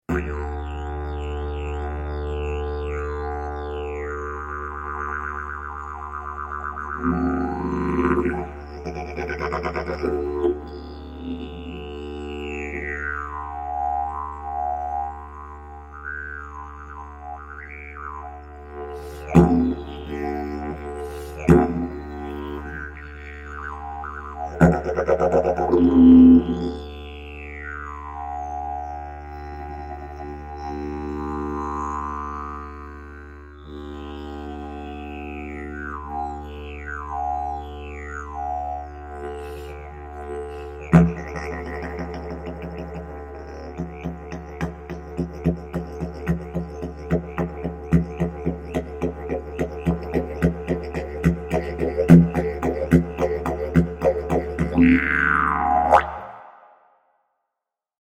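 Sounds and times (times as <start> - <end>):
didgeridoo: 0.0 - 56.6.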